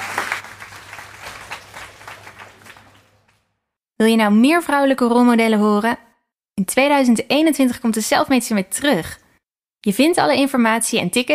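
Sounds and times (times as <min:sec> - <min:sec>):
audience applause: 0:00.0 - 0:03.4
speech: 0:04.0 - 0:06.0, 0:06.6 - 0:09.2, 0:09.8 - 0:11.3.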